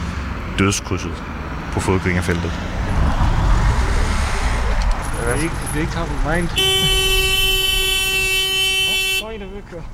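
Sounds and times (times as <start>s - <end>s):
low traffic rumble: 0.0s - 9.9s
speech: 0.6s - 2.8s, 5.2s - 7.2s
car horn honking at a driver about to run a red light: 6.5s - 9.6s.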